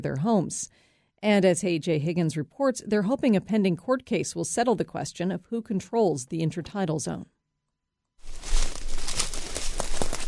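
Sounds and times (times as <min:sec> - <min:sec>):
speech: 0:00.0 - 0:07.4
dried rockweed crunching and popping underfoot: 0:08.2 - 0:10.2.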